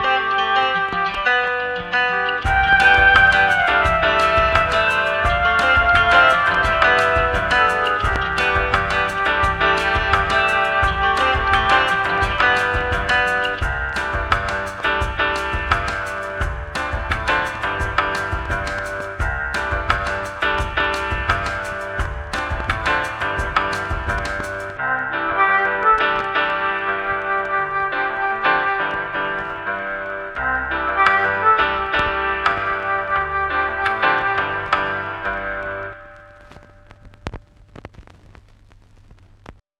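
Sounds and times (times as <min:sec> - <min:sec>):
bossa music: 0:00.0 - 0:37.1.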